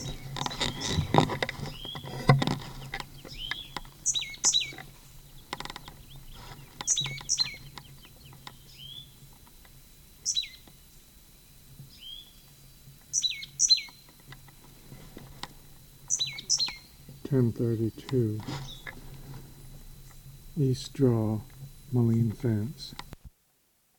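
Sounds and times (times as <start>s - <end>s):
wild bird chirps: 0.0s - 2.2s, 2.8s - 9.2s, 10.2s - 10.7s, 11.9s - 12.5s, 13.1s - 14.1s, 16.0s - 17.0s, 17.7s - 19.0s
faint low hum: 0.0s - 23.4s
speech: 17.3s - 18.8s, 20.6s - 23.0s.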